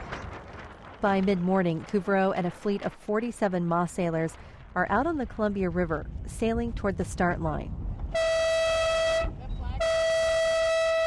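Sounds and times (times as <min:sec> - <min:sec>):
wind rumble: 0:00.0 - 0:11.0
speech: 0:01.0 - 0:07.8
five-minute race warning horn: 0:08.1 - 0:11.0.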